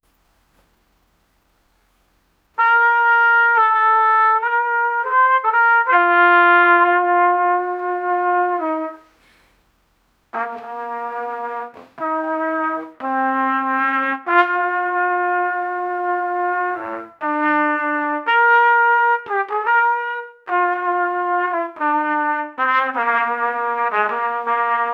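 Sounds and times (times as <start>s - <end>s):
trumpet playing Christmas music: 2.6s - 9.3s, 10.3s - 24.9s.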